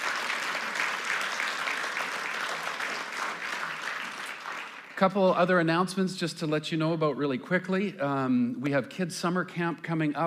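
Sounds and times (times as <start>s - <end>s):
audience applause: 0.0s - 5.0s
speech: 5.0s - 10.2s.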